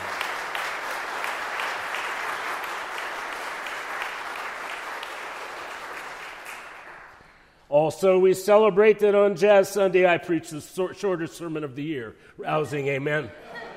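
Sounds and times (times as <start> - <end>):
crowd applause: 0.0 - 7.4
speech: 7.7 - 13.6.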